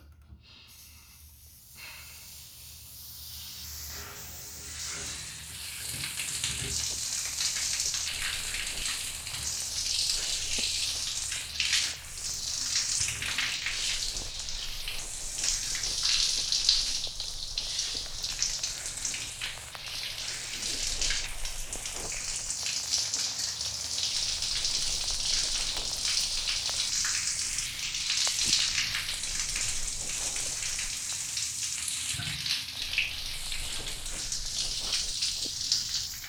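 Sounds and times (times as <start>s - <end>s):
toilet flushing: 1.0s - 36.2s.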